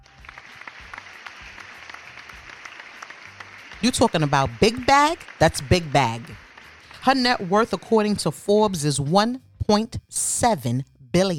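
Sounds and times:
applause: 0.0 - 7.8
speech: 3.8 - 6.4, 7.0 - 11.3.

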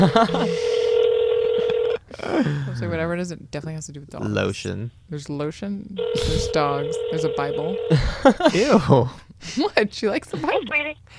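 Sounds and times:
speech: 0.0 - 0.8, 2.2 - 11.1
laughter: 0.0 - 0.9, 7.9 - 9.2
telephone dialing tone: 0.5 - 2.0, 6.0 - 7.9.

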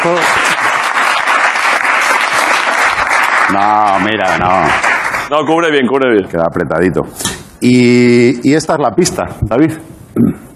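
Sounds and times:
speech: 0.0 - 0.4, 3.5 - 10.4
audience applause: 0.0 - 5.3.

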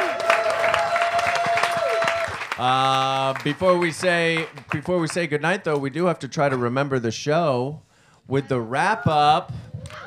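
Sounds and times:
audience applause: 0.0 - 4.9
speech: 2.6 - 10.0.

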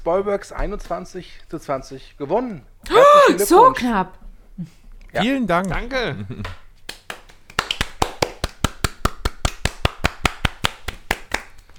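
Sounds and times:
speech: 0.0 - 6.6
applause: 6.9 - 11.7.

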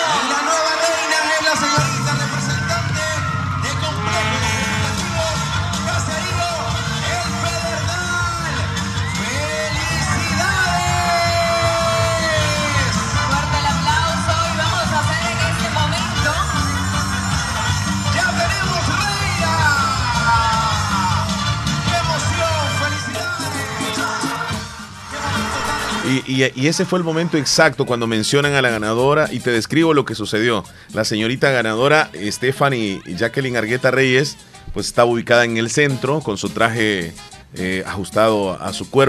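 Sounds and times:
whoops and shouts: 0.0 - 24.5
crowd cheering and applause: 0.0 - 28.7
speech: 26.4 - 39.0.

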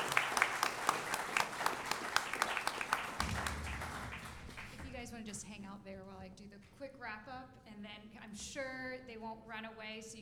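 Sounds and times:
audience applause: 0.0 - 5.0
speech: 6.9 - 10.1.

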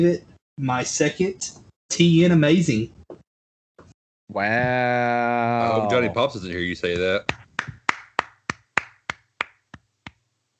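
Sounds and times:
speech: 0.0 - 3.0, 4.3 - 7.4
applause: 7.3 - 10.2.

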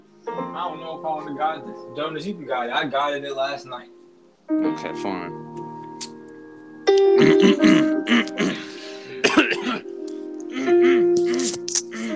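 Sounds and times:
speech: 0.6 - 5.4
person clearing throat: 7.1 - 12.1.

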